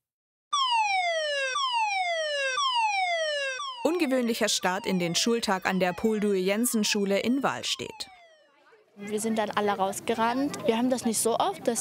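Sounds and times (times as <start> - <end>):
warning siren wailing: 0.5 - 8.9
speech: 3.8 - 8.1, 9.0 - 11.7.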